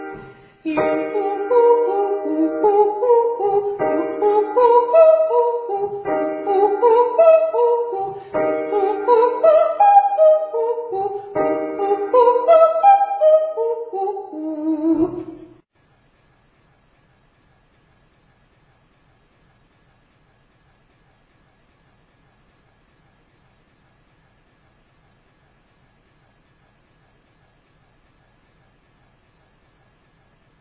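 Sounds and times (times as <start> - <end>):
person singing ascending triads and octaves to high D: 0.0 - 15.5.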